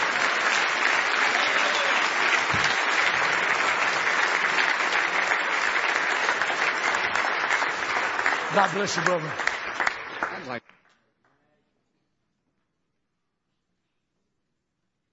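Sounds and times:
audience clapping hands: 0.0 - 11.0
speech: 8.6 - 9.5.

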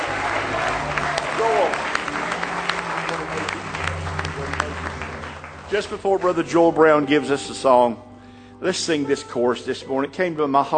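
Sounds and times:
audience clapping: 0.0 - 7.2
speech: 5.7 - 10.7.

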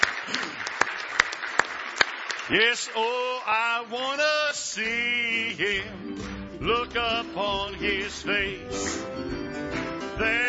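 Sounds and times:
church congregation clapping in praise: 0.0 - 3.6, 6.2 - 6.8, 8.3 - 10.4
speech: 2.5 - 10.4.

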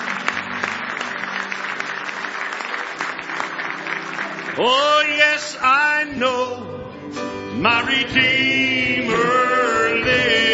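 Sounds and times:
audience clapping: 0.0 - 5.8
speech: 4.6 - 10.4.

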